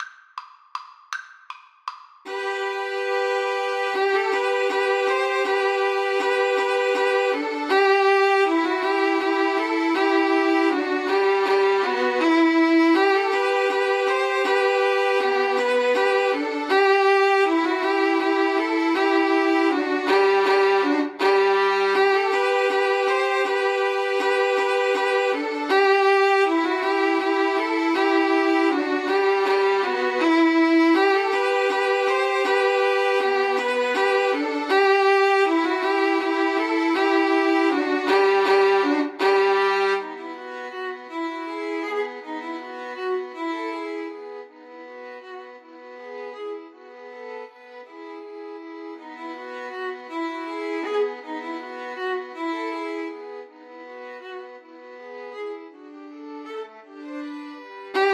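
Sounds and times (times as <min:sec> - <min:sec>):
Slavonic violin trio playing: 0:02.3 - 0:58.1.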